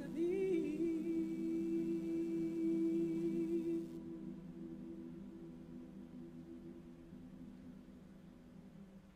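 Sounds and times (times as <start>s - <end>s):
SATB choir singing live: 0.0s - 5.2s.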